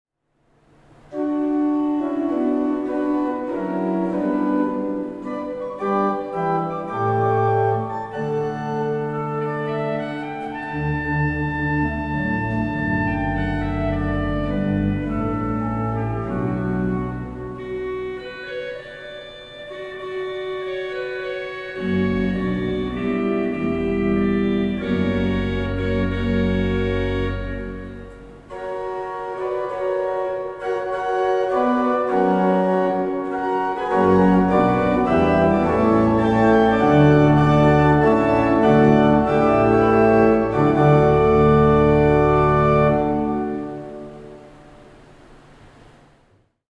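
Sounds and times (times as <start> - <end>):
pipe organ: 0.7 - 46.0.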